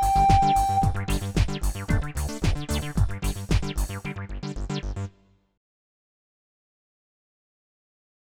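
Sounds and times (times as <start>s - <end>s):
recorder house music: 0.0s - 4.9s.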